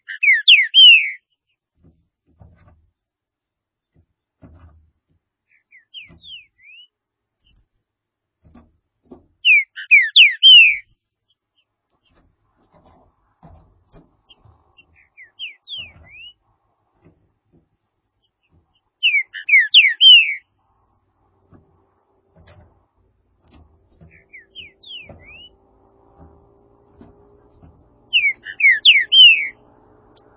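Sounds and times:
green-winged saltator whistled song: 0.0s - 1.2s, 5.7s - 6.9s, 9.4s - 10.9s, 15.2s - 16.4s, 19.0s - 20.5s, 24.1s - 25.6s, 28.1s - 29.6s.

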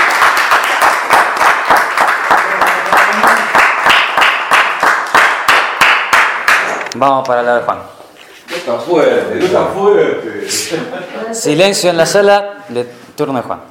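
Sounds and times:
crowd clapping in rhythm: 0.0s - 7.0s
speech: 7.0s - 8.0s, 8.7s - 13.6s.

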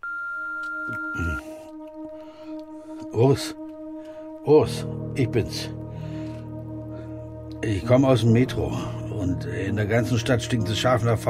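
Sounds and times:
answering machine beep: 0.0s - 1.4s
speech: 0.9s - 1.5s, 3.2s - 3.6s, 4.4s - 5.8s, 7.6s - 11.2s.

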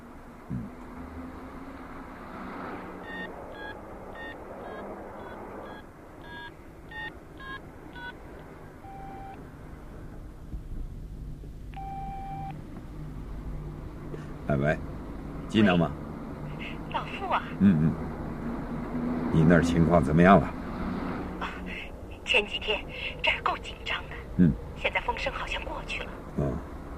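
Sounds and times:
steady low rumble of traffic or machinery: 0.0s - 26.9s
longer ringing beeps: 3.0s - 8.2s, 8.8s - 9.4s, 11.8s - 12.6s
short electronic phone keypad tones: 3.0s - 8.2s, 8.8s - 9.4s, 11.8s - 12.6s
speech: 14.5s - 14.9s, 15.5s - 16.0s, 17.3s - 18.1s, 19.4s - 20.6s.

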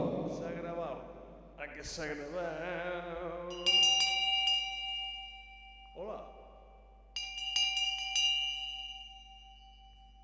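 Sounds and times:
speech: 1.0s - 4.0s
small bell dinging: 3.5s - 10.2s.

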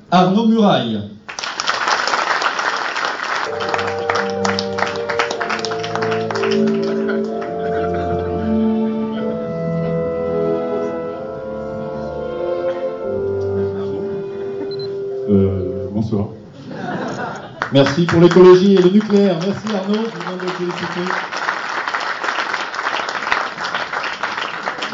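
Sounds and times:
speech: 0.1s - 1.2s, 17.7s - 21.3s
audience applause for an award-winning author at a comics festival awards ceremony: 1.3s - 8.7s, 17.0s - 24.9s
sustained tones: 3.5s - 16.1s
laughter: 3.6s - 9.3s, 12.6s - 14.9s, 16.5s - 19.0s.

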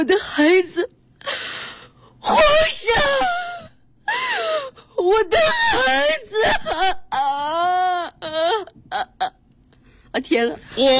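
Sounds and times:
speech: 0.0s - 1.0s, 2.3s - 3.4s, 5.0s - 7.6s, 10.2s - 10.9s
voice actor wailing in a Beijing arts radio studio: 2.2s - 3.7s, 5.0s - 9.3s.

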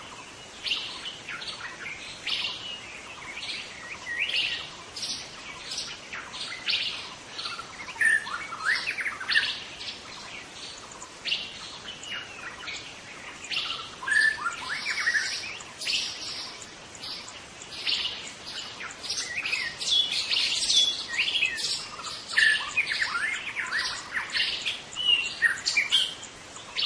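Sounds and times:
faint background hiss: 0.0s - 26.8s
white-rumped shama song: 0.0s - 26.8s.

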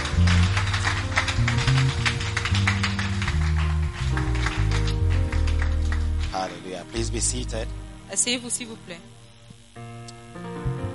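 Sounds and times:
audience clapping hands for the Lord: 0.0s - 7.6s
speech: 6.8s - 9.2s.

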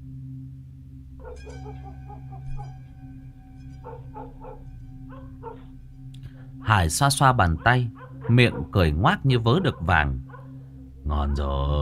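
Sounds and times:
dogs barking along the road: 1.2s - 3.0s, 3.7s - 5.8s, 7.2s - 11.7s
speech: 1.3s - 10.3s, 11.1s - 11.7s.

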